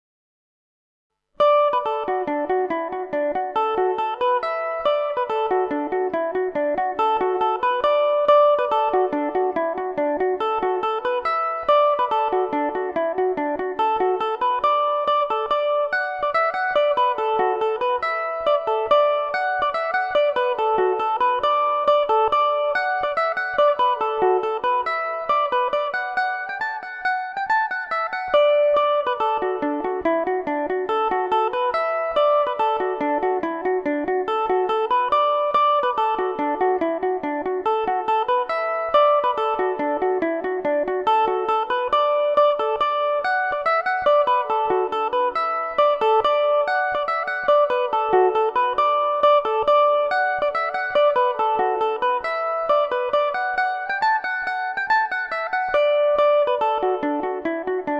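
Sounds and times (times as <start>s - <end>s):
Irish mandolin playing polka in D major: 1.4s - 57.9s.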